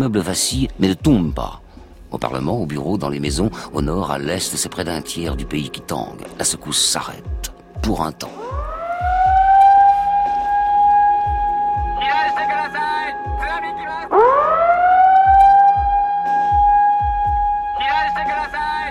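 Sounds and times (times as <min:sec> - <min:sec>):
speech: 0:00.0 - 0:08.6
Japanese tsunami warning siren: 0:08.3 - 0:18.9.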